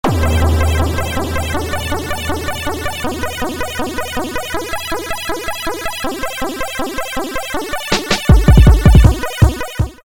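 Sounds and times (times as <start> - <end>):
space shooter game sounds: 0.0 - 9.9.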